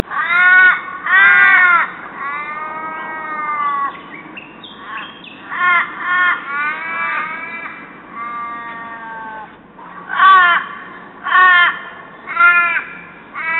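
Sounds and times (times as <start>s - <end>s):
common raven calling: 0.0s - 13.5s.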